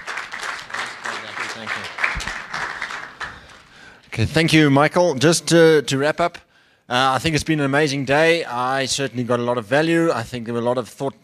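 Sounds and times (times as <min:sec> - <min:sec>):
audience applause: 0:00.0 - 0:03.9
speech: 0:01.6 - 0:02.4, 0:04.2 - 0:11.2.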